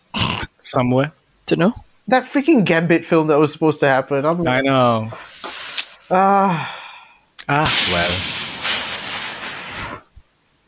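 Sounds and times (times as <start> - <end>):
speech: 0.6 - 5.4, 6.1 - 6.8, 7.5 - 8.3
heavy breathing into microphone: 5.1 - 10.2.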